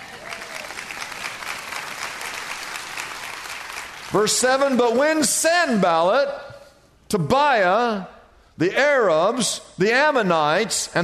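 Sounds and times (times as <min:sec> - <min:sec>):
audience applauding: 0:00.0 - 0:05.3
speech: 0:04.1 - 0:06.5, 0:07.1 - 0:11.0.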